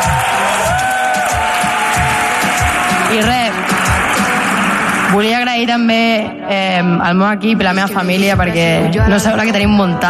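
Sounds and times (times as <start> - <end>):
audience applause: 0.0 - 5.2
speech: 3.1 - 3.4, 5.1 - 10.0.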